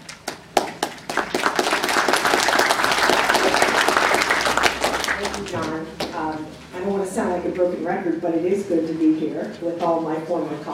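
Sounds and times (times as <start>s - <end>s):
audience applause: 0.3s - 6.1s
speech: 7.6s - 10.7s.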